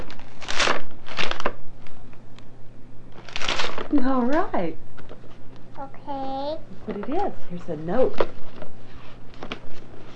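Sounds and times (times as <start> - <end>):
wrapping paper torn off a present: 0.0 - 2.0, 3.2 - 3.9
low steady hum: 0.0 - 10.1
speech: 3.9 - 4.9, 5.8 - 8.5.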